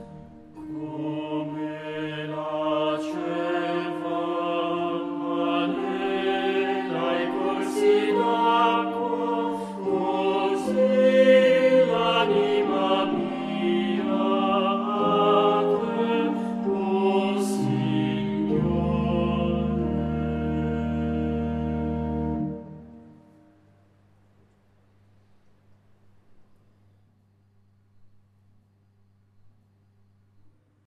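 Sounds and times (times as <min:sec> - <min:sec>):
Holy Saturday vigil chant after the sixth reading: 0:00.5 - 0:23.4.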